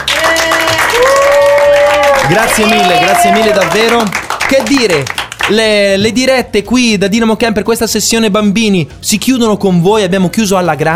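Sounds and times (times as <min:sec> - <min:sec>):
applause at Dynamo Camp for the staff who led a children's session: 0:00.0 - 0:05.8
speech: 0:02.3 - 0:10.9.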